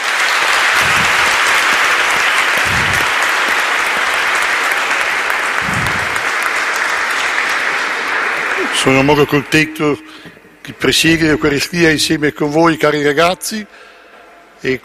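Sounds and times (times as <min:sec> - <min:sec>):
audience applause: 0:00.0 - 0:10.2
speech: 0:08.8 - 0:13.8, 0:14.6 - 0:14.8.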